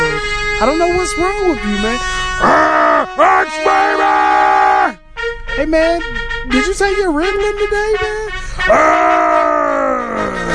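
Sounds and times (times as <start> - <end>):
speech: 0.6 - 4.5, 5.6 - 9.5
person imitating a howling dog: 2.4 - 5.0, 8.7 - 10.5.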